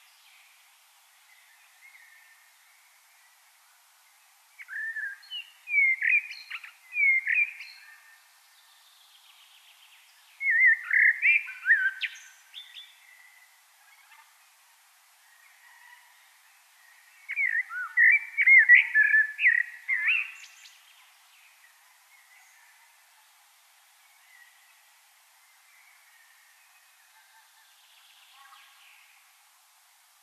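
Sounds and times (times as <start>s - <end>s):
soft background hiss: 0.0s - 30.2s
common blackbird singing: 4.6s - 8.1s, 10.3s - 13.5s, 17.0s - 20.8s.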